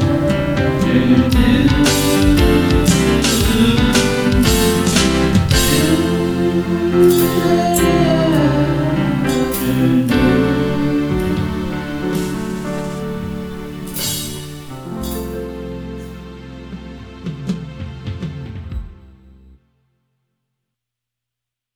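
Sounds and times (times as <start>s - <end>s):
person singing: 0.0s - 14.4s.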